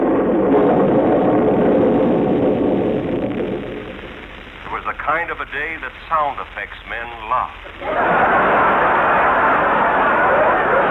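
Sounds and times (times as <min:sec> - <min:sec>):
thunder: 0:00.0 - 0:04.3
speech: 0:05.2 - 0:08.7
laughter: 0:07.8 - 0:10.9.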